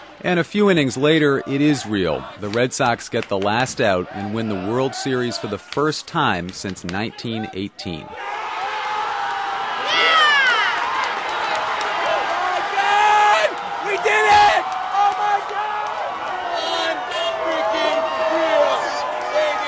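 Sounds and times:
speech: 0.2 - 8.4
bar crowd cheering World Series win: 8.2 - 19.6.

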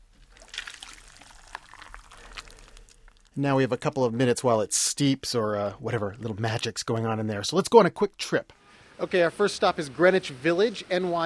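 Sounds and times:
hot water poured into styrofoam cup: 0.2 - 3.4
speech: 3.4 - 11.2.

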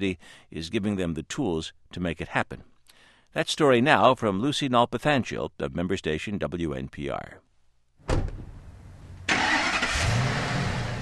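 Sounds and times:
speech: 0.0 - 2.7, 3.3 - 7.4
pickup truck engine cranking and running: 8.3 - 10.9.

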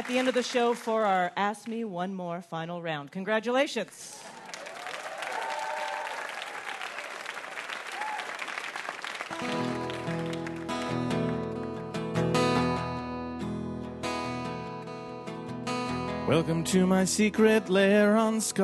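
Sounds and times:
audience applause for a game show contestant: 0.0 - 1.0, 4.2 - 11.9
speech: 0.0 - 4.4, 16.3 - 18.6
music: 9.3 - 18.6.

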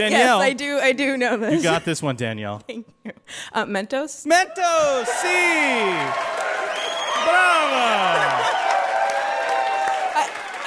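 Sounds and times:
speech: 0.0 - 6.5, 7.2 - 8.7
cheers and whoops: 4.5 - 10.6
live audience applause: 5.0 - 10.6.

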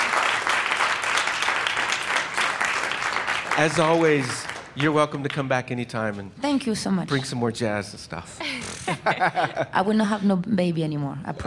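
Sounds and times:
audience applause at a live music event in Austin, Texas: 0.0 - 5.6
speech: 3.6 - 11.4
laughter: 8.4 - 10.4.

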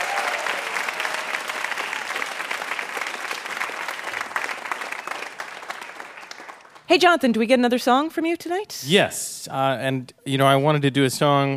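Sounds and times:
audience applause: 0.0 - 6.9
speech: 6.9 - 11.5.

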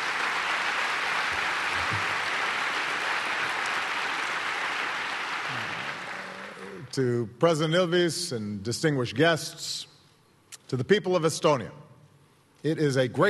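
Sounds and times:
audience applause: 0.0 - 6.9
speech: 6.9 - 9.9, 10.7 - 11.8, 12.6 - 13.2.

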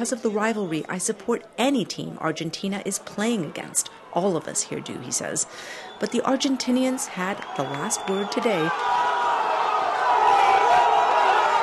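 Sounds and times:
speech: 0.0 - 9.1
Argentinian football fans cheering after their team scores: 3.1 - 11.6.

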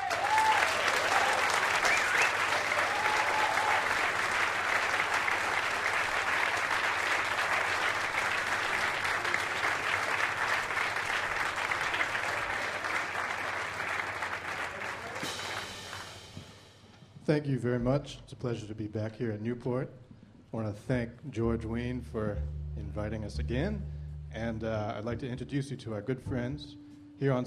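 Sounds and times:
audience applause welcoming a performer at the 2009 Newport Jazz Festival: 0.0 - 16.5
speech: 17.3 - 27.4.

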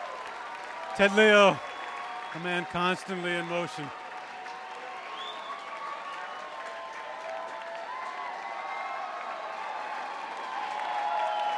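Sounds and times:
sold-out crowd cheering and applauding: 0.0 - 11.5
speech: 1.0 - 1.7, 2.3 - 4.0
shrill whistles from crowd: 5.1 - 6.4.

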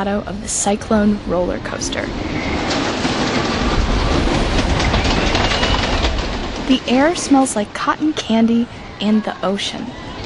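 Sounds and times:
speech: 0.0 - 2.9, 6.7 - 10.2
subway train riding on tracks: 0.0 - 10.2
subway train wheels clickety-clack: 1.8 - 8.4.

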